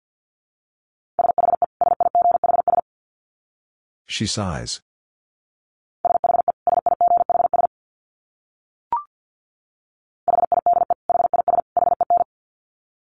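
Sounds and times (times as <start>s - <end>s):
Morse code tones at 50 wpm: 1.2s - 2.8s, 6.1s - 7.7s, 10.3s - 12.3s
speech: 4.2s - 4.9s.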